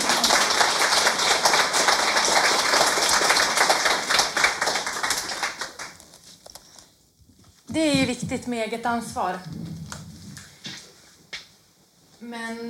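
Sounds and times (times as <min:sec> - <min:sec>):
audience applause: 0:00.0 - 0:06.2
speech: 0:08.0 - 0:09.6, 0:12.3 - 0:12.6.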